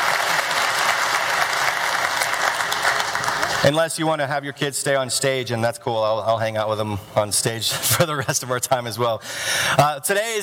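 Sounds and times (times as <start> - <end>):
audience applause: 0.0 - 3.7
speech: 3.6 - 10.4.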